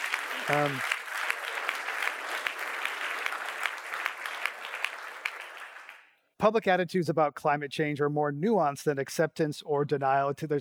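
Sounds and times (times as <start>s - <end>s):
audience applause: 0.0s - 6.1s
speech: 0.5s - 0.9s, 6.4s - 10.6s.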